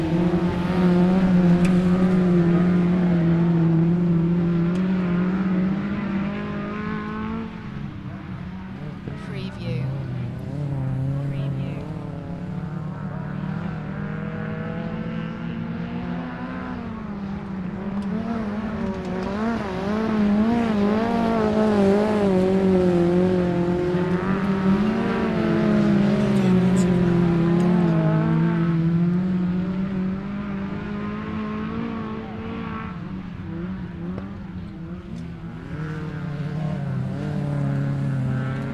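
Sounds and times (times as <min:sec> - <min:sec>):
light aircraft: 0:00.0 - 0:38.7
race cars passing at a race event: 0:00.0 - 0:38.7
people chattering at a race event: 0:09.0 - 0:12.0.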